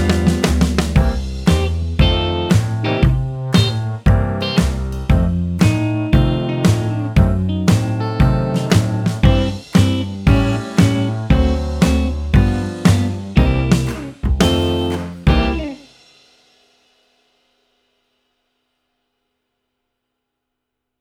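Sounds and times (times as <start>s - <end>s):
piano piece: 0.0s - 15.8s.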